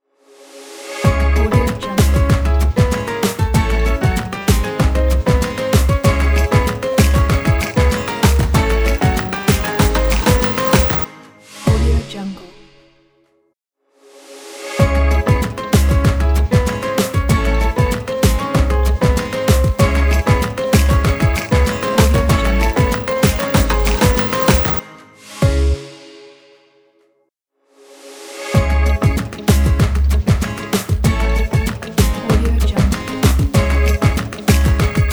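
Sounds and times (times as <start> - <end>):
latin percussion ident: 0.9 - 11.1, 14.8 - 24.8, 28.6 - 35.1.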